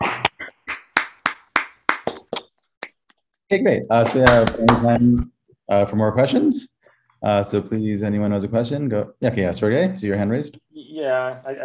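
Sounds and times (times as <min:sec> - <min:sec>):
audience hands clapping: 0:00.0 - 0:02.5, 0:04.1 - 0:05.0
speech: 0:03.5 - 0:11.6.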